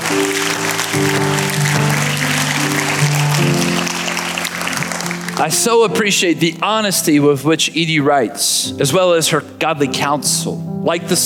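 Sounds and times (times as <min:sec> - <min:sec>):
crowd applause: 0:00.0 - 0:06.0
sustained low musical notes: 0:00.0 - 0:11.2
speech: 0:05.4 - 0:11.2.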